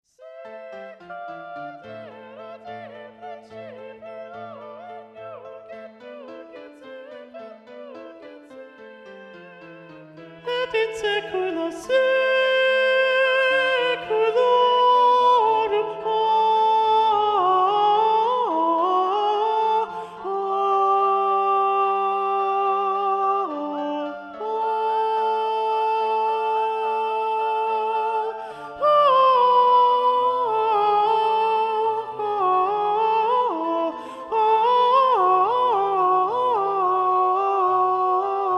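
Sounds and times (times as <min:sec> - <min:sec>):
alto voice singing: 0:00.0 - 0:38.5.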